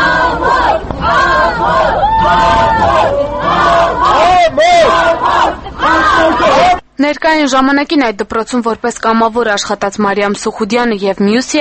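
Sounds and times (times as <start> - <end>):
angry crowd shouting at the accused in a courthouse courtyard: 0.0 - 6.8
speech: 7.1 - 11.6.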